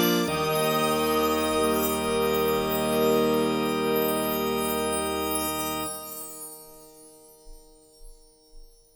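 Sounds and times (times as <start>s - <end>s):
accordion: 0.0s - 7.0s.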